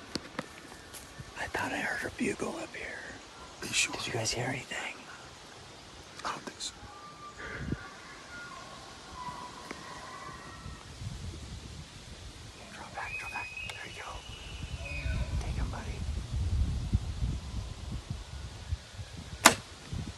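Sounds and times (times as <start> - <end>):
outdoor rustling: 0.0 - 20.1
people whispering: 1.3 - 5.4, 6.1 - 10.6, 12.6 - 16.1
speech: 1.5 - 5.0
bow shot releasing an arrow on a deer hunt: 19.4 - 19.7.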